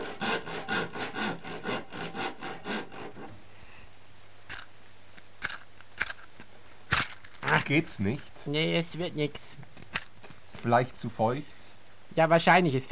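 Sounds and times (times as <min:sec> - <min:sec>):
saw cutting wood: 0:00.0 - 0:03.4
speech: 0:07.6 - 0:09.6, 0:10.6 - 0:11.6, 0:12.2 - 0:12.8.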